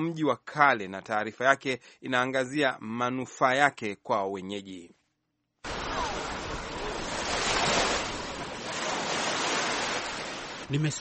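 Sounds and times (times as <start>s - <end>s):
speech: 0.0s - 5.0s, 10.7s - 10.9s
gentle Indian Ocean waves on the shore beside Fort Jesus in Mombasa: 5.6s - 10.9s.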